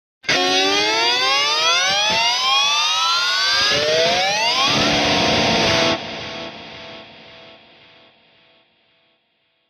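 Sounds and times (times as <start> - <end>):
electric guitar scream: 0.3 - 7.3.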